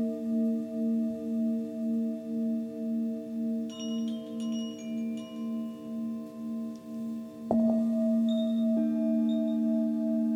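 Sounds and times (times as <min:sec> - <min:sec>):
crystal and Tibetan bowls ringing: 0:00.0 - 0:10.3
small bright chimes and high tinkles: 0:03.7 - 0:10.3.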